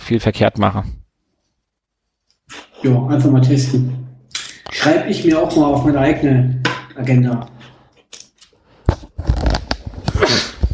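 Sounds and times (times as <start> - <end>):
speech: 0.1 - 1.0, 2.8 - 4.0, 4.6 - 7.6
person sneezing: 10.1 - 10.6.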